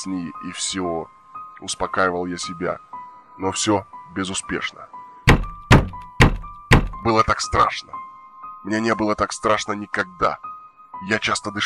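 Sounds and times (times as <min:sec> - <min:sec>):
speech: 0:00.0 - 0:05.0, 0:07.0 - 0:08.0, 0:08.6 - 0:11.6
knocking on a window: 0:05.3 - 0:07.1.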